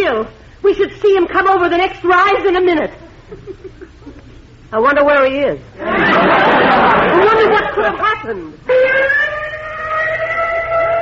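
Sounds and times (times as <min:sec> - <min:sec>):
speech: 0:00.2 - 0:04.0, 0:04.7 - 0:09.3
laughter: 0:03.2 - 0:04.2, 0:05.8 - 0:08.2
ambulance siren wailing: 0:08.7 - 0:11.0.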